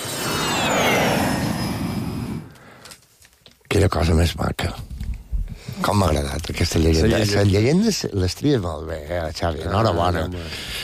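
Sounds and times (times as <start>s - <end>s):
airplane flying past as a radio transition effect: 0.0s - 2.8s
speech: 3.8s - 4.9s, 5.8s - 10.8s.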